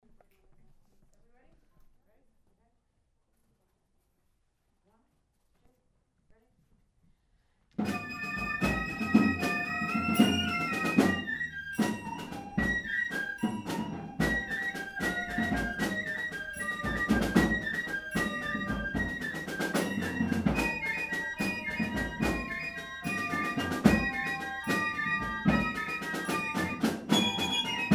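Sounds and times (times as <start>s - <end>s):
carol bells ringing: 7.8s - 27.9s.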